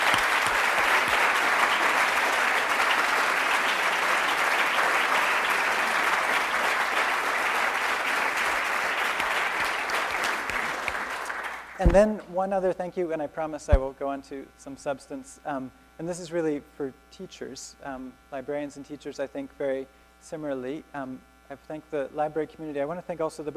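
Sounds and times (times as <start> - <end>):
audience applause: 0.0 - 11.8
speech: 11.8 - 23.5.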